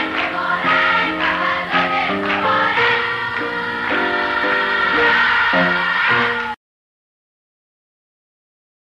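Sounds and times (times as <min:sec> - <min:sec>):
birthday song music: 0:00.0 - 0:06.6.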